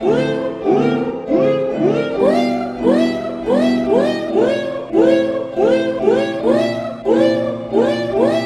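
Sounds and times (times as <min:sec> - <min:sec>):
piano: 0:00.0 - 0:08.4.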